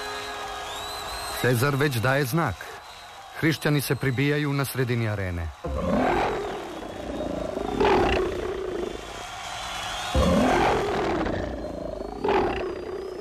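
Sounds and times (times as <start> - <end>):
speech: 1.4 - 2.8, 3.4 - 6.0
lions roaring in a Roman arena: 5.7 - 9.0, 10.2 - 13.1.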